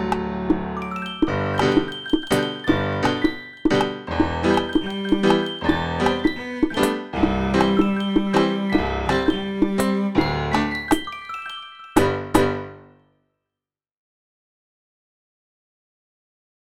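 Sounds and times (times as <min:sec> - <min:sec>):
accompaniment music: 0:00.0 - 0:13.0.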